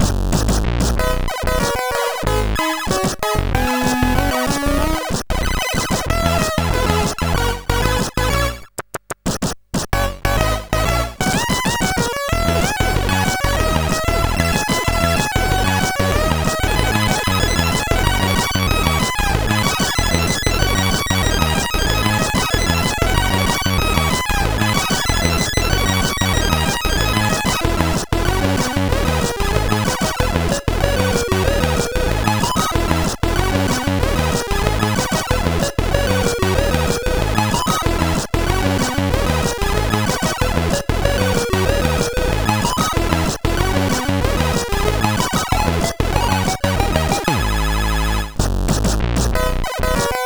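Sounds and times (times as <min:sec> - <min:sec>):
SID CSG8580R5 chip music: 0:00.0 - 0:50.2.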